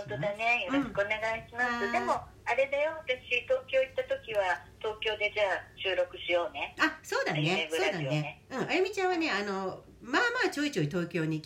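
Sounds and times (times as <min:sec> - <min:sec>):
two people talking in Japanese over the telephone: 0:00.0 - 0:10.6
low steady hum: 0:00.0 - 0:11.4
speech: 0:00.1 - 0:11.4.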